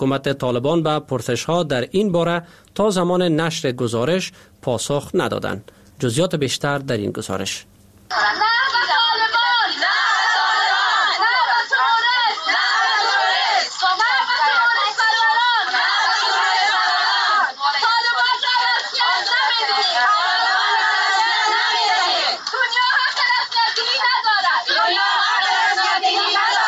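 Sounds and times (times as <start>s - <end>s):
speech: 0.0s - 9.0s
Afghan women protesters chanting slogans in Islamabad: 8.1s - 26.6s.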